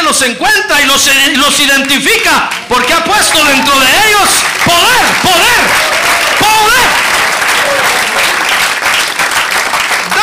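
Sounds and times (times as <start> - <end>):
speech: 0.1 - 7.0
audience applause: 1.8 - 10.2.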